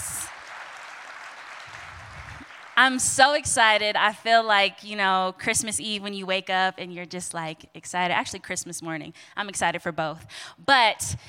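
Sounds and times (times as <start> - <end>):
crowd applause: 0.0 - 2.8
speech: 2.8 - 11.2.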